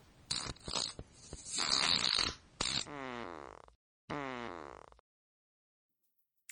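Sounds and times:
farting: 0.3s - 5.0s.

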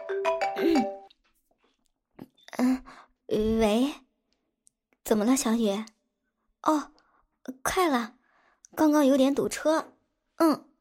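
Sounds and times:
phone ringtone melody: 0.0s - 1.1s
speech: 0.1s - 0.9s, 3.3s - 4.0s, 5.1s - 6.0s, 6.6s - 10.7s.

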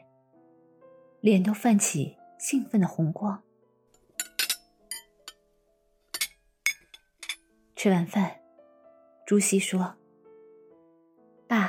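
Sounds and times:
speech: 1.2s - 3.5s, 7.8s - 8.4s, 9.3s - 10.0s
glasses clinking in a toast: 4.2s - 5.4s, 6.1s - 7.5s.

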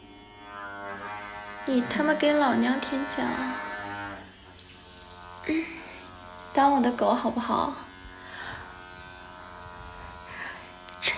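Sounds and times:
loud vibrating buzz: 0.0s - 11.1s
speech: 1.7s - 3.7s, 6.6s - 7.9s.

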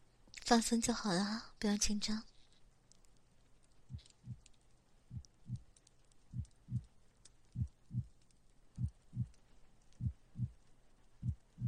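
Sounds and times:
speech: 0.5s - 2.3s
faint rustling: 2.2s - 11.6s
heartbeat heard through a stethoscope: 3.9s - 4.5s, 5.1s - 5.7s, 6.3s - 6.9s, 7.5s - 8.1s, 8.8s - 10.6s, 11.2s - 11.6s.

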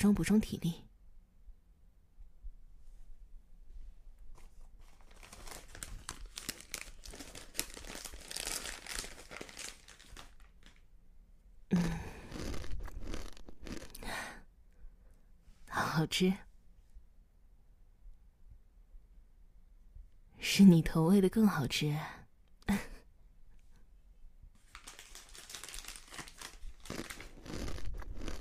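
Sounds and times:
speech: 0.0s - 0.9s, 16.0s - 16.5s, 20.6s - 22.8s
snack packaging crinkling as it is taken out of a bag: 4.8s - 10.9s, 12.2s - 14.0s, 24.6s - 28.3s.

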